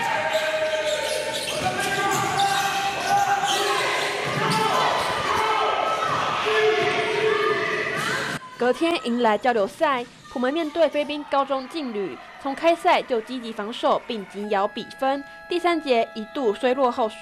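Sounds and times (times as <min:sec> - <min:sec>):
basketballs bouncing at a girls' basketball team practice in the Philippines: 0:00.0 - 0:07.3
busy court noise: 0:00.0 - 0:17.2
speech: 0:08.6 - 0:17.2.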